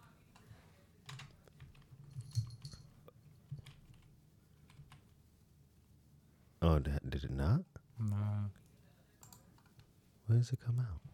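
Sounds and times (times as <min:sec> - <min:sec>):
typing on a computer keyboard: 0:01.0 - 0:02.8, 0:03.5 - 0:05.1
speech: 0:06.6 - 0:08.6, 0:10.3 - 0:11.1.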